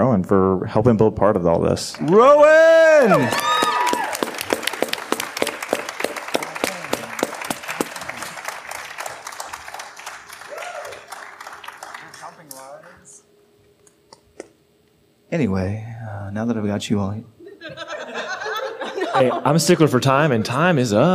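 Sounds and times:
speech: 0.2 - 3.5, 15.4 - 17.4, 19.2 - 21.1
audience clapping: 1.9 - 13.2
laughter: 6.4 - 8.6, 17.4 - 20.7.

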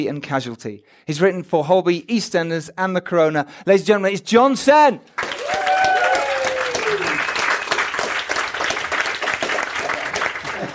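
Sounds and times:
speech: 0.0 - 5.3
crowd cheering and whoops: 5.2 - 7.7
crowd applause: 5.2 - 10.7.

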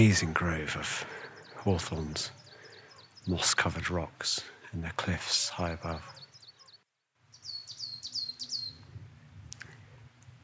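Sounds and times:
speech: 0.0 - 2.4, 3.2 - 6.2
coal tit calling: 0.0 - 4.7, 5.4 - 8.8.

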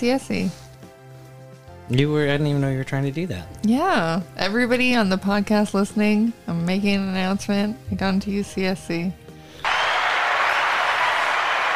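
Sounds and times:
speech: 0.0 - 0.6, 1.9 - 9.2
studio audience applause sound effect: 9.6 - 11.7.

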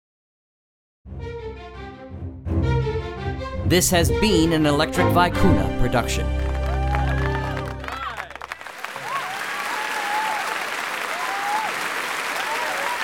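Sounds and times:
music: 1.1 - 8.4
speech: 3.7 - 6.4
audience applause: 6.2 - 13.0
shouted cheers: 6.6 - 13.0.

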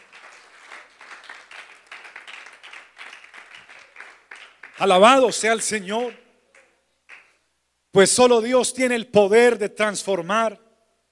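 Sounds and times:
audience applause: 0.0 - 5.2
speech: 4.8 - 6.2, 7.9 - 10.6.

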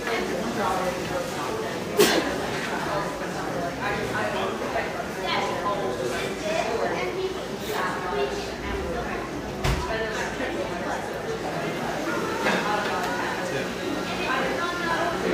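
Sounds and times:
crowd chatter in Portland's Pearl District: 0.0 - 15.3.

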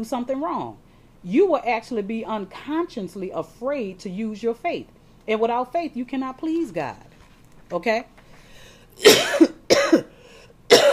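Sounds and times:
speech: 0.0 - 7.1, 7.7 - 8.2, 9.0 - 10.1
harsh coughs from a preacher with a cold during a sermon: 9.0 - 10.9.

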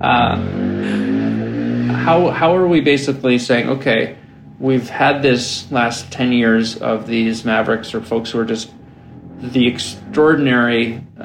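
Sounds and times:
speech: 0.0 - 1.0, 2.0 - 8.8, 9.4 - 11.2
motorcycle passing by: 0.0 - 11.2.

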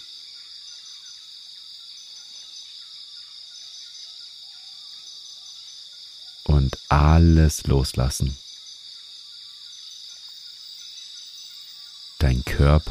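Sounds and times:
bird chirps in a rainforest: 0.0 - 12.8
crickets and insects in a rainforest: 0.0 - 12.8
speech: 6.4 - 8.4, 12.3 - 12.8.

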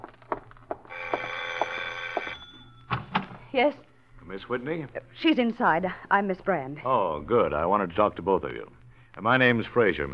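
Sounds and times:
doorbell ringing: 0.9 - 3.0
speech: 3.6 - 10.1.

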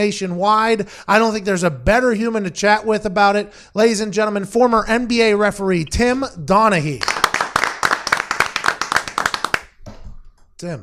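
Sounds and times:
speech: 0.0 - 7.2, 10.6 - 10.8
hand clapping applause: 7.0 - 9.8.

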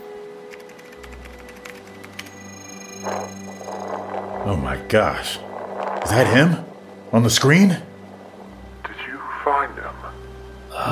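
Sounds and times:
computer keyboard typing a link: 0.5 - 2.4
steady electronic hum: 1.8 - 8.9
speech: 4.5 - 5.5, 6.1 - 7.9.

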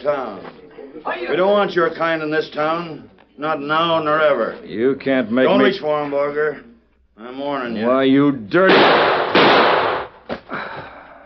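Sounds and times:
speech: 0.0 - 9.2
gunshots: 8.6 - 10.3.

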